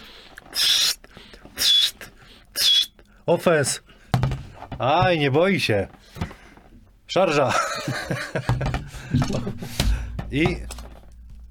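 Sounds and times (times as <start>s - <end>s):
person whistling: 0.6s - 1.0s, 1.6s - 3.0s
speech: 3.2s - 3.9s, 4.8s - 6.0s, 7.1s - 10.7s
laughter: 7.3s - 9.8s.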